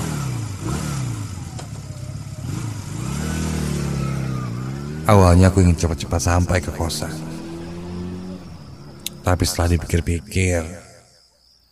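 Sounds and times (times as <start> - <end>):
motorcycle engine revving while ridden home from a hotel to a boarding house: 0.0 - 9.8
speech: 5.1 - 7.3, 9.3 - 10.8.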